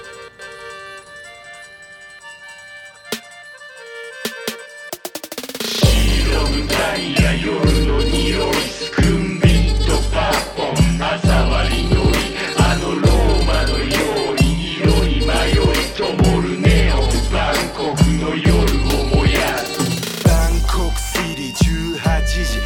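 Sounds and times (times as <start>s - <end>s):
vocals: 5.7s - 22.6s.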